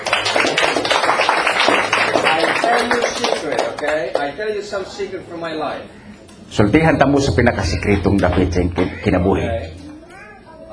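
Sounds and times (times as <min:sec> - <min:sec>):
audience clapping during a church service: 0:00.0 - 0:04.4
speech: 0:02.8 - 0:09.8.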